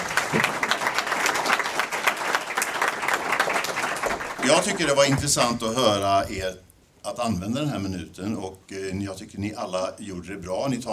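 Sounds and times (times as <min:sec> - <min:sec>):
audience applause: 0:00.0 - 0:05.4
speech: 0:00.3 - 0:00.5, 0:04.5 - 0:10.9.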